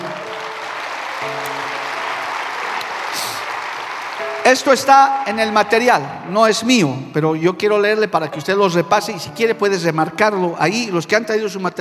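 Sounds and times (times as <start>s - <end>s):
audience applause: 0.0s - 5.9s
speech: 1.2s - 1.6s, 4.4s - 11.8s.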